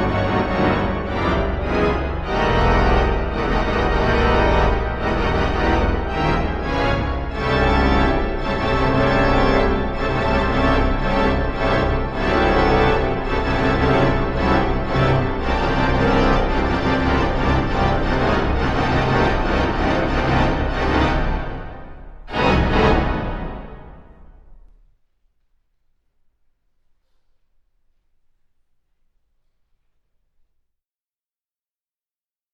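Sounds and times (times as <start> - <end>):
organ solo: 0.0 - 24.0.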